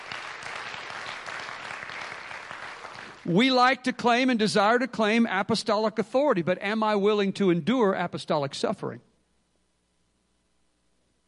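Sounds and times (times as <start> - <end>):
people clapping: 0.0 - 3.4
speech: 3.2 - 9.1.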